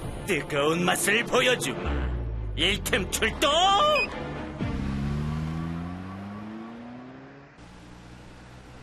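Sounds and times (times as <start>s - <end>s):
car engines roaring: 0.2s - 8.8s
speech: 0.3s - 4.3s
car engine accelerating: 4.1s - 8.8s
road and traffic noise: 4.1s - 8.8s.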